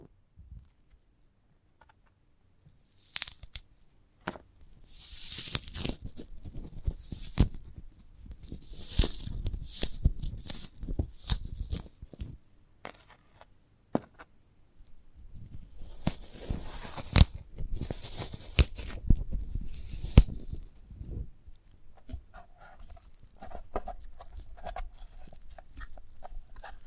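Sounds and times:
sprouted coconut scratching, crackling and tearing: 2.9 - 3.8, 4.6 - 13.5, 15.5 - 26.8.

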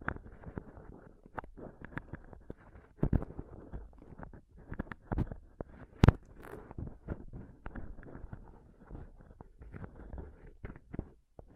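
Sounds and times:
scratching and touching on a microphone: 0.0 - 11.5.

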